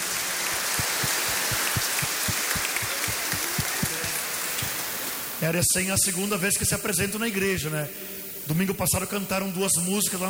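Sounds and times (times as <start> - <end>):
applause: 0.0 - 5.1
speech: 5.4 - 10.2.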